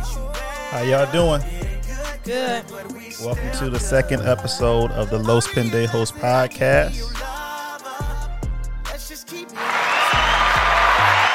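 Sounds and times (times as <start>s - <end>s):
beat-driven music track with thumping bass notes: 0.0s - 11.3s
speech: 0.7s - 1.6s, 2.2s - 7.3s
applause: 9.5s - 11.3s.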